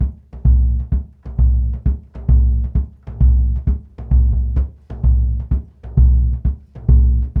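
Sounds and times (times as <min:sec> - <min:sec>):
low ethno drums: 0:00.0 - 0:07.3.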